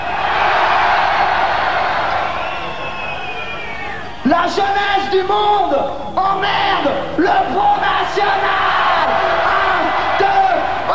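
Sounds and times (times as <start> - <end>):
concert crowd shouting and cheering: 0.0 - 5.3, 6.2 - 10.9
speech: 4.3 - 8.8.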